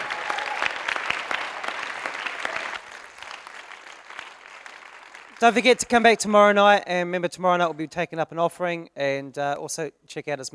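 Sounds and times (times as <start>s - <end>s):
audience applause: 0.0s - 6.2s
speech: 5.4s - 10.5s.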